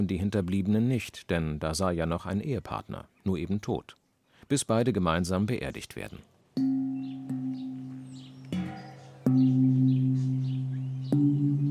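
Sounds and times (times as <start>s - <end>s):
speech: 0.0s - 6.7s
birds chirping faintly: 0.0s - 11.7s
funeral gong being struck: 6.6s - 11.7s.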